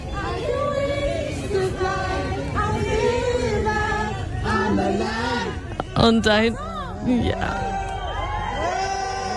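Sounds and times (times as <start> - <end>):
crowd of fans singing: 0.0 - 9.3
speech: 6.0 - 7.8
cheering and whoops: 6.6 - 9.3.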